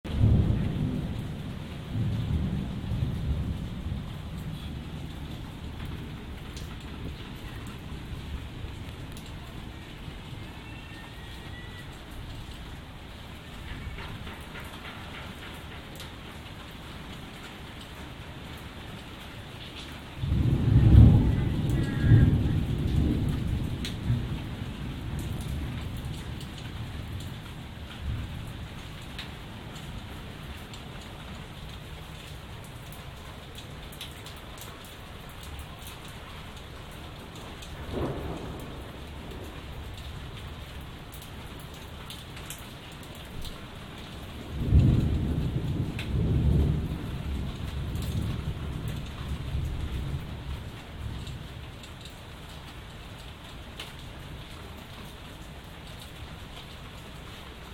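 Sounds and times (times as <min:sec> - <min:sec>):
thunder: 0:00.1 - 0:12.8, 0:13.5 - 0:16.4, 0:20.2 - 0:29.3, 0:37.4 - 0:40.6, 0:44.0 - 0:51.3.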